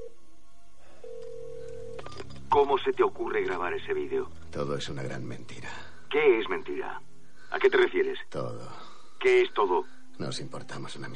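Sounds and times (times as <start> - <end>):
long steady mobile phone tone: 1.0 - 2.2
speech: 2.6 - 11.1.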